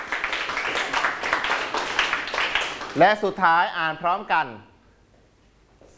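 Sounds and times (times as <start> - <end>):
classroom clapping for a classmate: 0.0 - 3.2
speech: 3.0 - 4.7.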